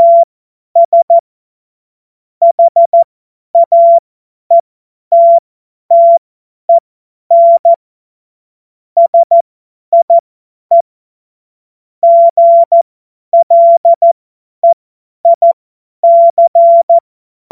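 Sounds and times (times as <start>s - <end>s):
CW Morse code beeps: 0.0s - 1.2s, 2.4s - 3.0s, 3.6s - 7.8s, 9.0s - 9.4s, 10.0s - 10.8s, 12.0s - 12.8s, 13.4s - 17.5s.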